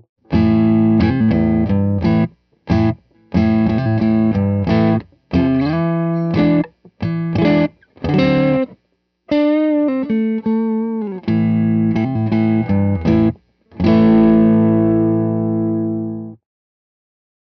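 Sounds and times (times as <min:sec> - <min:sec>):
distorted electric guitar switching from bridge to neck pickup: 0:00.2 - 0:16.4.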